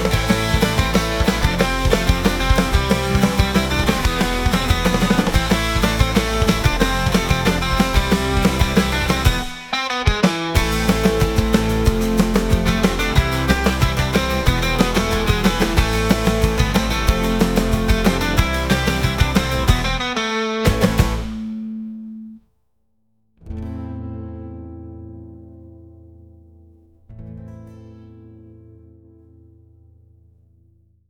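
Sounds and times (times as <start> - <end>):
instrumental music: 0.0 - 22.4.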